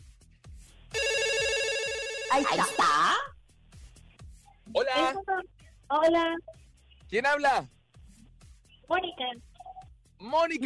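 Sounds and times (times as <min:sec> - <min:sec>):
telephone ringing: 0:01.0 - 0:03.3
speech: 0:02.3 - 0:03.1, 0:05.9 - 0:06.5, 0:07.1 - 0:07.8, 0:08.9 - 0:09.5, 0:10.2 - 0:10.6.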